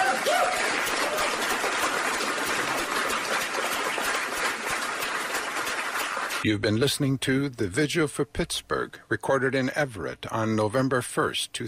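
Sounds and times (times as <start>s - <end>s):
crowd clapping: 0.0s - 6.4s
speech: 6.4s - 11.6s.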